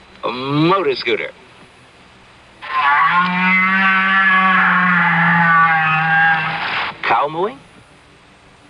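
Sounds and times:
speech: 0:00.2 - 0:01.4, 0:07.3 - 0:07.7
whale vocalization: 0:02.6 - 0:06.9.

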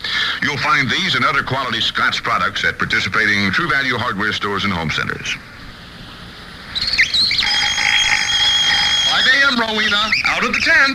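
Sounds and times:
speech: 0:00.4 - 0:05.5, 0:09.6 - 0:10.9
wind-up alarm clock ringing: 0:07.1 - 0:10.1.

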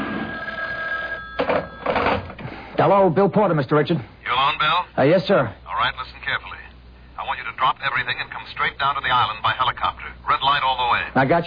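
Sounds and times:
telephone hotline ringing: 0:00.0 - 0:02.4
speech: 0:02.8 - 0:06.4, 0:07.6 - 0:11.4.

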